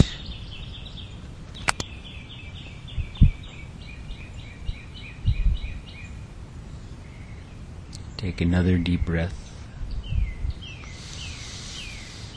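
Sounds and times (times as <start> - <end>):
bird singing high chirping phrases: 0.0 - 12.3
low rumbling ambience: 0.0 - 12.3
sharp clicks: 1.5 - 1.9
low thumps: 3.0 - 3.6
speech: 8.2 - 9.4.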